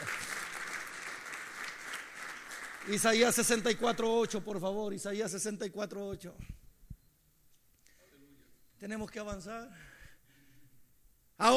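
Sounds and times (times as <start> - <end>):
audience applause: 0.0 - 3.6
speech: 2.8 - 6.6, 8.8 - 9.9.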